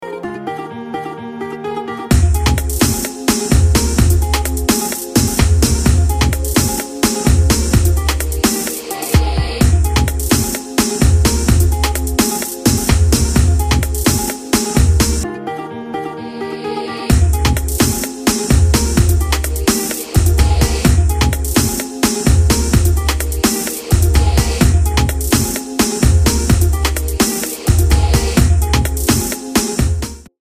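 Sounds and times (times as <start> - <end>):
karaoke song: 0.0 - 30.3.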